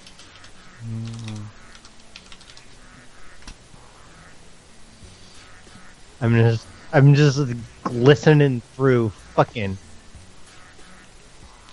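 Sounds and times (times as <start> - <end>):
typing a name on a computer keyboard: 0.0 - 2.7
speech: 0.8 - 1.2, 6.2 - 9.9.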